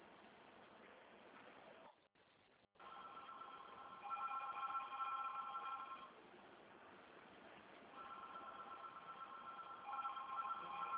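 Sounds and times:
telephone ringing: 2.8 - 6.2, 8.0 - 10.9.

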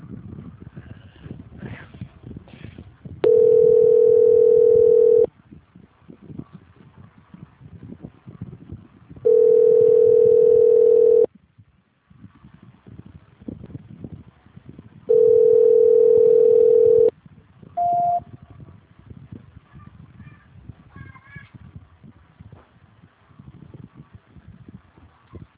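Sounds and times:
noise: 0.0 - 25.5
telephone line tones during call transfer: 3.2 - 5.3, 9.3 - 11.3, 15.1 - 17.1, 17.8 - 18.2
short higher beep: 17.8 - 18.2.

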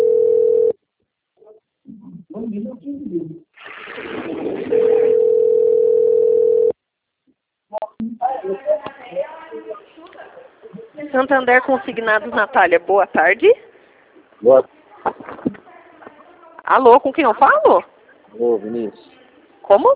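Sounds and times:
telephone dial tone while calling: 0.0 - 0.7, 5.0 - 6.8
speech: 2.5 - 5.1, 11.1 - 13.7, 14.4 - 14.8, 16.7 - 19.1, 19.7 - 19.9
line noise: 3.6 - 5.2.

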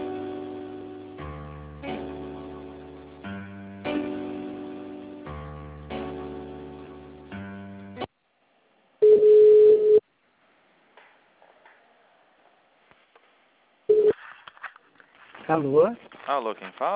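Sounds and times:
telephone line tones during a call transfer: 9.0 - 10.0, 13.9 - 14.1
speech: 15.5 - 16.9.

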